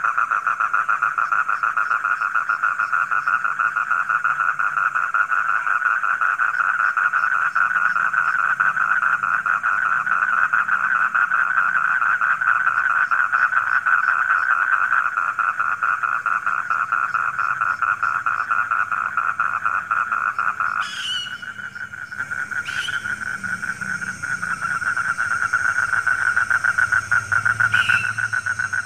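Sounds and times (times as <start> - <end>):
frogs croaking: 0.0 - 28.8
faint high hiss: 20.7 - 28.8.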